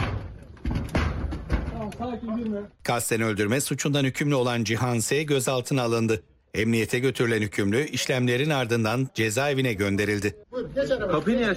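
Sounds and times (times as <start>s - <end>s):
special operations police breaking a door with a battering ram: 0.0s - 1.9s
speech: 1.9s - 11.5s.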